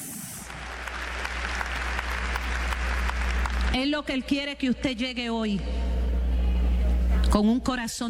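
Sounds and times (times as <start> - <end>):
audience applause: 0.4 - 3.7
low steady hum: 0.5 - 8.0
speech: 3.8 - 6.0, 7.3 - 8.0.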